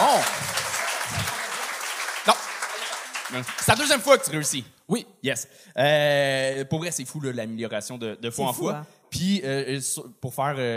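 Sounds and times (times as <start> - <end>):
audience applause: 0.0 - 4.5
speech: 3.3 - 10.7.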